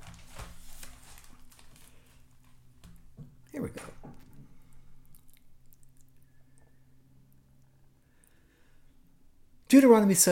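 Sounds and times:
thin Bible pages rustling as turned: 0:00.0 - 0:03.0
faint steady hum: 0:00.0 - 0:10.1
speech: 0:09.8 - 0:10.3.

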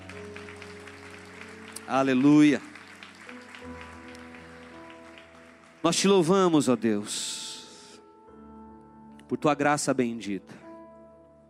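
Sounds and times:
audience applauding: 0:00.0 - 0:06.9
speech: 0:01.9 - 0:02.7, 0:05.9 - 0:07.3, 0:09.3 - 0:10.6.

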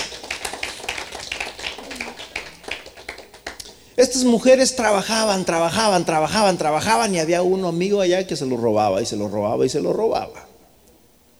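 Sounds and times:
audience applause: 0:00.0 - 0:03.7
speech: 0:04.0 - 0:10.5.

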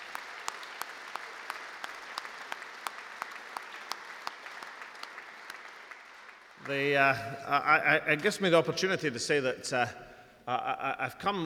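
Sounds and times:
audience applause: 0:00.0 - 0:07.3
speech: 0:06.7 - 0:11.4.

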